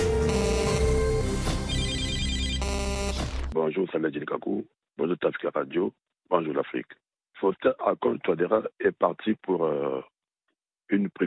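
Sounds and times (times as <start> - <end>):
answering machine beep: 0.2 - 1.0, 1.6 - 3.6
speech: 3.9 - 10.1, 10.9 - 11.2.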